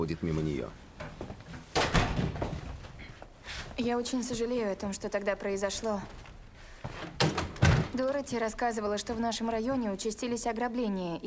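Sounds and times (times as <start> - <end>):
speech: 0.0 - 0.9, 3.8 - 6.2, 8.0 - 11.2
front door being opened: 1.7 - 2.5, 7.2 - 8.0.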